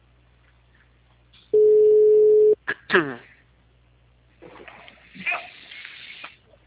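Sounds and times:
telephone ringing tone: 1.6s - 2.6s
people talking: 2.7s - 3.3s.

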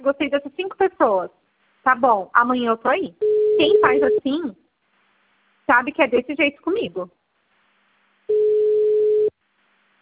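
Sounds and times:
speech: 0.0s - 4.6s, 5.7s - 7.2s
phone line beeping: 3.2s - 4.3s, 8.3s - 9.3s.

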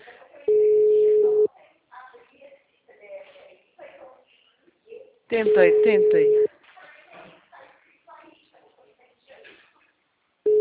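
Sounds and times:
long telephone tone while placing a call: 0.5s - 1.5s, 5.5s - 6.5s
speech: 5.3s - 6.4s.

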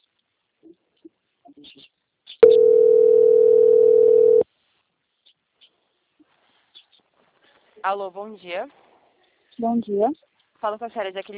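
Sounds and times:
telephone line tone while a bank call is transferred to quality control: 2.4s - 4.4s
speech: 7.8s - 8.8s, 9.6s - 11.3s.

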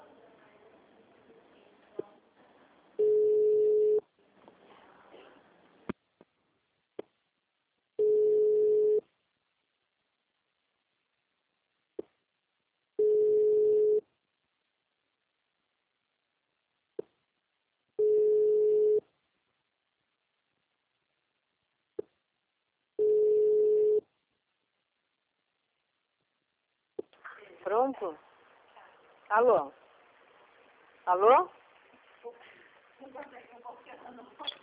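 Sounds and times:
low noise: 0.0s - 34.6s
telephone ringback tone: 3.0s - 4.0s, 13.0s - 14.0s, 18.0s - 19.0s, 23.0s - 24.0s
speech: 27.6s - 28.3s, 29.3s - 29.8s, 31.1s - 31.6s.

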